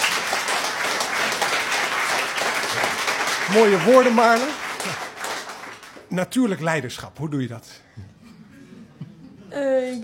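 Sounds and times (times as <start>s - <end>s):
audience applause: 0.0s - 6.6s
speech: 3.5s - 5.0s, 6.1s - 8.1s, 9.5s - 10.0s.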